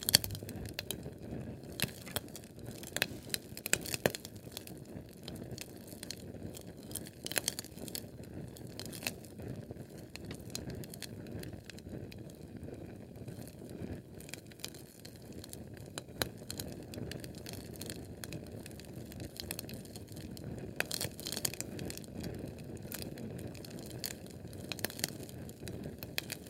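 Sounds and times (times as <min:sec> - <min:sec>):
Sterno flame crackling under a catering food tray: 0:00.0 - 0:26.4.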